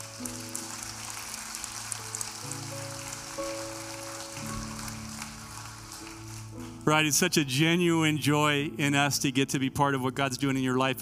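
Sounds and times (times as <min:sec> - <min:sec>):
crowd applause: 0:00.0 - 0:07.1
speech: 0:06.8 - 0:11.0.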